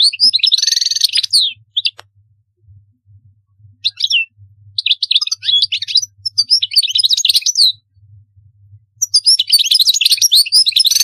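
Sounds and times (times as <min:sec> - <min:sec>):
European goldfinch singing: 0:00.0 - 0:02.0, 0:03.8 - 0:07.7, 0:09.0 - 0:11.0
low hum: 0:01.4 - 0:04.8, 0:07.8 - 0:09.0.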